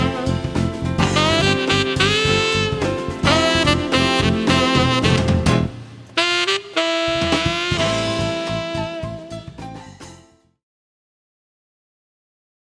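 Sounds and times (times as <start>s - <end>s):
short saxophone quartet piece: 0.0s - 9.6s.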